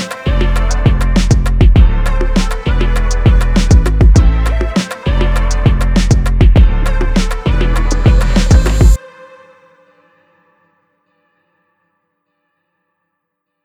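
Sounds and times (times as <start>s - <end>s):
rnb music: 0.0s - 9.0s.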